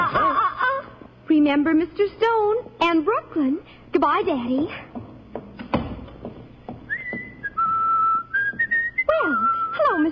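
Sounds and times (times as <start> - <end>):
laughter: 0.0 - 1.1
speech: 1.4 - 5.0
loud human whistling in a hallway: 6.9 - 10.1.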